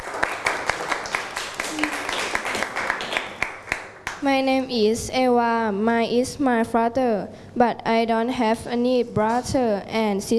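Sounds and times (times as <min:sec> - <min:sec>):
students clapping for a classmate: 0:00.0 - 0:04.3
speech: 0:04.2 - 0:10.3.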